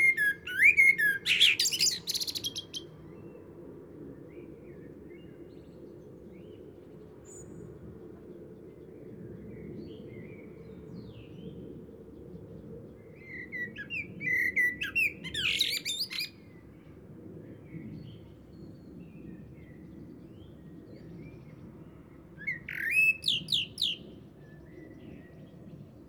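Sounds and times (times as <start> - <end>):
common blackbird song: 0.0 - 2.9, 13.4 - 16.4, 22.5 - 24.1.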